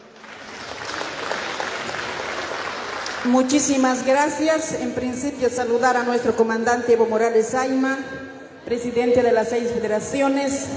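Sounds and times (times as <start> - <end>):
audience applause: 0.0 - 3.3
speech: 3.2 - 10.7.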